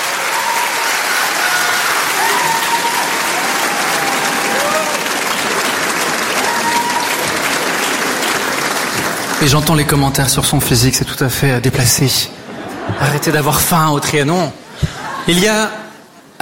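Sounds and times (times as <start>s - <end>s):
concert audience cheering at the Trianon: 0.0s - 9.3s
concert audience clapping at the Trianon: 0.0s - 10.8s
speech: 9.4s - 15.8s
laughter: 12.4s - 13.8s, 14.7s - 15.5s.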